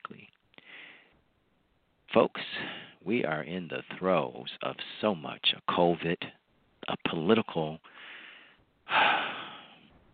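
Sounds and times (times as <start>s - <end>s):
sharp intake of breath mid-sentence: 0.6s - 1.2s, 7.9s - 9.9s
speech: 2.1s - 6.3s, 6.9s - 8.1s.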